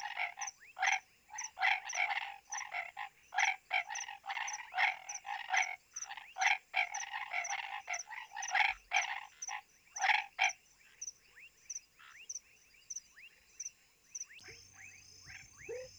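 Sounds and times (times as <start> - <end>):
Hypsiboas raniceps calling at Lago de Alter do Chão: 0.0 - 10.6, 14.4 - 15.9.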